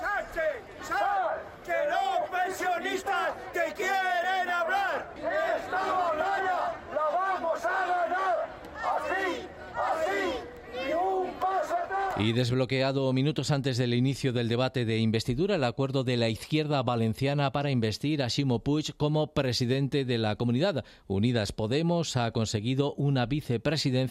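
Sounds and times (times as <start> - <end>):
pensioners chanting slogans outside the Spanish lower house of parliament: 0.0 - 12.3
speech: 12.2 - 24.0.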